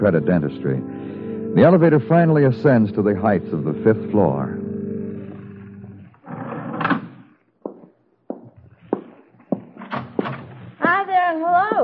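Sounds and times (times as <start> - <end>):
speech: 0.0 - 4.6
footsteps in a hallway: 7.6 - 11.8.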